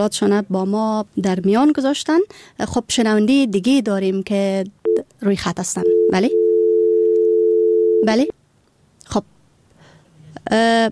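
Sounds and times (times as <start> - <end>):
speech: 0.0 - 6.4, 8.0 - 8.4, 9.1 - 9.3, 10.5 - 10.9
telephone dial tone after a caller's line is cut off: 5.9 - 8.1.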